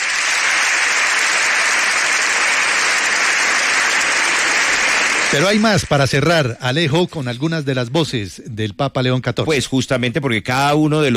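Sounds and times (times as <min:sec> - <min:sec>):
large crowd applauding in an ovation: 0:00.0 - 0:06.6
speech: 0:05.3 - 0:11.1.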